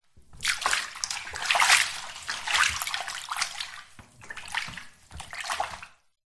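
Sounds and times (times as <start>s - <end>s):
very shallow household bath water movements: 0.0s - 6.2s.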